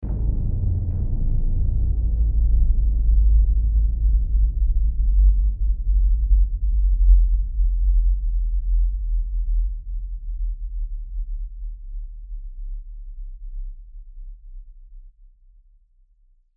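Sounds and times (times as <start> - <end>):
deep bass tone with reverb: 0.0 - 12.2.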